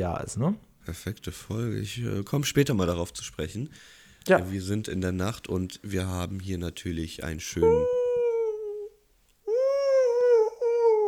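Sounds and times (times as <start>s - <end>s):
speech: 0.0s - 8.0s
person imitating a howling animal: 7.6s - 11.0s.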